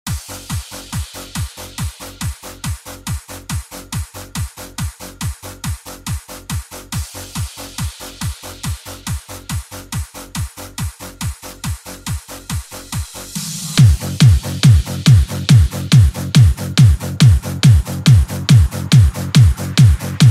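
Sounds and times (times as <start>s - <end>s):
car audio music: 12.5s - 20.2s.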